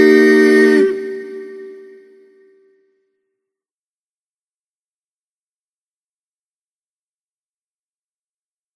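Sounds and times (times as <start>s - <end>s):
national anthem music without bass: 0.0s - 2.3s.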